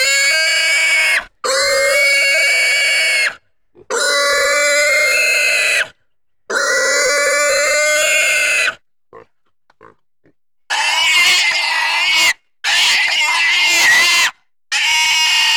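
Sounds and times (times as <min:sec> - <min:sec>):
pig squealing: 0:00.0 - 0:05.9, 0:06.5 - 0:08.8, 0:10.7 - 0:15.5.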